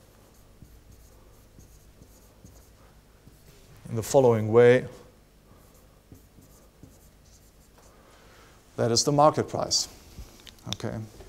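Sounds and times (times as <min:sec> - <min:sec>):
writing out an equation for a market price: 0:00.2 - 0:03.6, 0:05.6 - 0:07.9
speech: 0:03.9 - 0:05.0, 0:08.8 - 0:10.0, 0:10.7 - 0:11.2.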